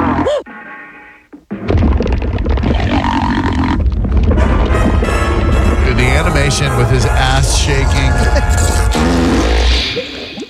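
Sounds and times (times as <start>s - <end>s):
cartoon fart sound effect: 1.6s - 5.9s, 8.9s - 10.2s
laughter: 5.9s - 9.2s
speech: 6.6s - 9.2s.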